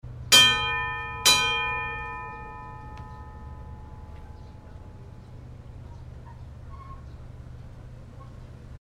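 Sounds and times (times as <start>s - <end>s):
Western church bell ringing: 0.3s - 5.8s.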